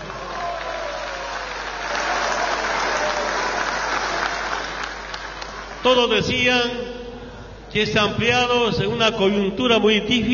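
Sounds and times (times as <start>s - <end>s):
sustained applause from a large crowd: 0.0s - 5.9s
speech: 5.8s - 7.0s, 7.7s - 10.3s.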